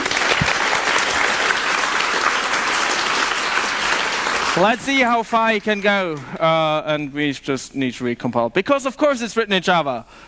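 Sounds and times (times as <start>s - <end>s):
crowd clapping: 0.0s - 6.4s
speech: 4.6s - 10.2s.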